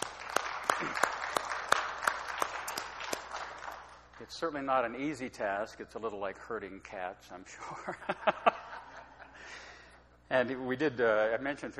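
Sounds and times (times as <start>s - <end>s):
audience applause: 0.0s - 4.2s
speech: 4.3s - 8.4s, 10.3s - 11.7s
laughter: 7.6s - 9.7s.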